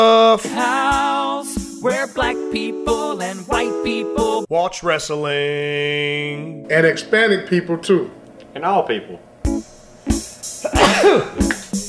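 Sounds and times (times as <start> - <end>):
speech: 0.0 - 1.0, 1.8 - 9.3, 10.6 - 11.6
person sneezing: 10.6 - 11.8.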